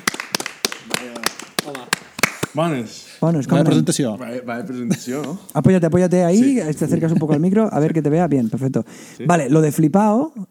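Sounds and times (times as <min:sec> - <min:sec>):
audience clapping: 0:00.0 - 0:02.6
speech: 0:02.6 - 0:10.4.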